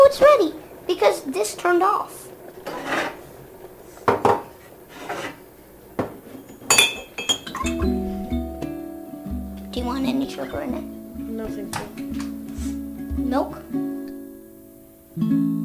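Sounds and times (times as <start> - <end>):
speech: 0.1 - 2.2, 9.8 - 12.3, 13.3 - 13.9
hot water pouring into a cup: 0.6 - 7.7
cup clinking against other dishes: 6.0 - 8.5.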